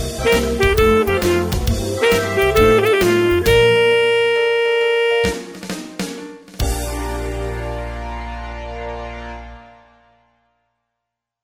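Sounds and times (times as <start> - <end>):
rock jingle: 0.0 - 8.0.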